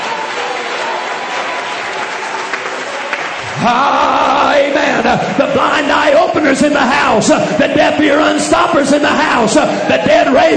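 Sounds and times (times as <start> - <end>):
large crowd clapping: 0.0 - 6.5
speech: 3.6 - 10.5.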